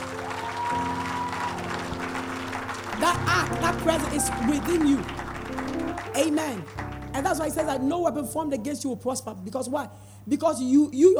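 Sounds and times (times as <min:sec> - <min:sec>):
audience clapping: 0:00.0 - 0:08.2
speech: 0:03.0 - 0:11.1.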